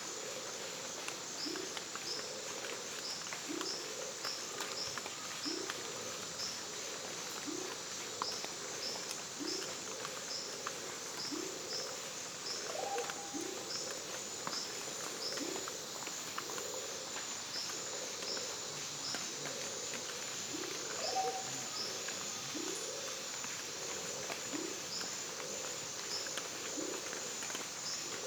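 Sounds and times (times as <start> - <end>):
water dripping from foliage after heavy rain in the Bolivian Amazon: 0.4 - 28.2
frogs in the Bolivian Amazon after heavy rain: 11.2 - 28.2.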